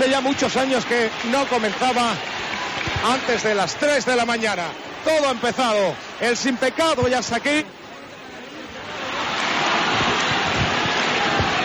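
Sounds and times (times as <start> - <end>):
speech: 0.0 - 2.3, 3.0 - 7.8
crowd applauding inside a sanctuary: 0.0 - 7.3, 8.8 - 11.6.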